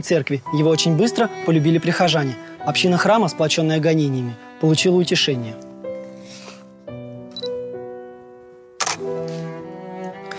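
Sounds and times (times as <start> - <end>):
speech: 0.0 - 5.7
camera shutter clicks: 8.8 - 9.0.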